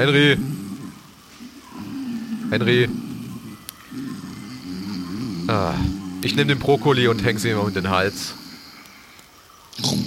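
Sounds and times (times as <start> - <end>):
speech: 0.0 - 0.6, 2.5 - 3.1, 5.5 - 8.4
person imitating snoring: 1.8 - 6.3, 9.8 - 10.0.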